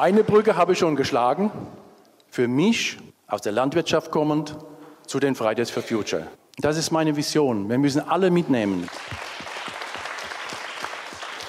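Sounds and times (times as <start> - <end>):
speech: 0.0 - 9.3
polite audience applause in a hall after a winemaker's speech: 8.6 - 11.4.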